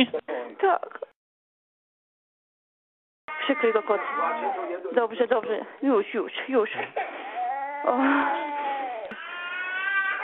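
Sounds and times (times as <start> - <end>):
speech: 0.0 - 1.1, 3.4 - 7.2, 7.8 - 8.5
small child crying: 3.3 - 4.7, 7.2 - 10.2.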